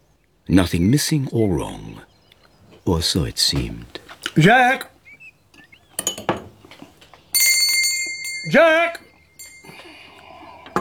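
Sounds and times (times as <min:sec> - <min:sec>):
speech: 0:00.5 - 0:02.1, 0:02.8 - 0:04.9, 0:08.4 - 0:09.0
hand bell rung to summon a servant: 0:06.0 - 0:06.5, 0:07.3 - 0:10.7.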